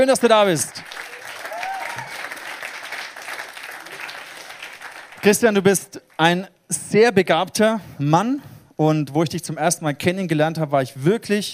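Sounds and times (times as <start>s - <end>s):
speech: 0.0s - 0.9s, 5.2s - 11.5s
audience applause welcoming a guest: 0.5s - 5.4s.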